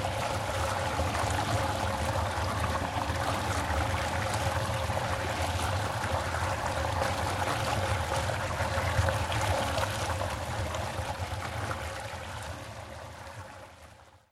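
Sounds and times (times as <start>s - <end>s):
pond water: 0.0s - 14.3s.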